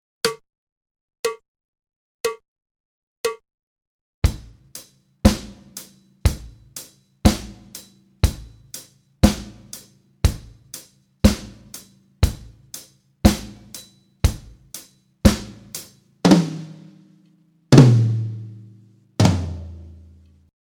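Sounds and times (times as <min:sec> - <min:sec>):
drum kit practice: 0:04.2 - 0:20.2.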